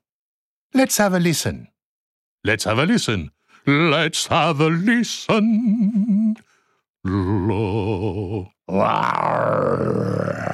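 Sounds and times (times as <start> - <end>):
speech: 0.8 - 1.7, 2.4 - 10.5
human voice imitating a lion's roar: 7.0 - 10.5.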